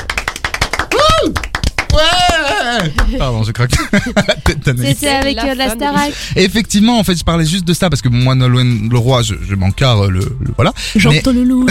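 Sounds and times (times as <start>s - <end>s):
people clapping: 0.0s - 3.5s, 4.4s - 5.4s
vocal whoop: 0.9s - 2.9s
laughter: 2.2s - 5.1s
speech: 2.8s - 11.6s.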